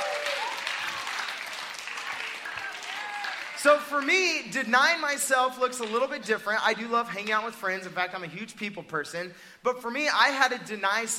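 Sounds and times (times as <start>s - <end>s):
crowd applause: 0.0s - 4.1s
speech: 3.6s - 11.1s.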